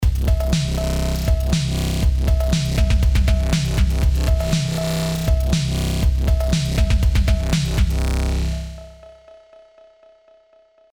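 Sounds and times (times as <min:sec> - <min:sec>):
CMI V Coldfire distorted drum beat with sidechain: 0:00.0 - 0:09.0.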